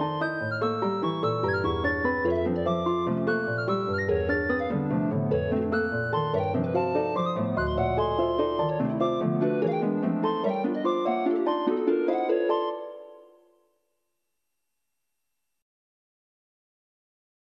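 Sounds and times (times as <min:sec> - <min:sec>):
flute in algorithmic composition: 0:00.0 - 0:13.4
piano in algorithmic composition: 0:00.0 - 0:13.6.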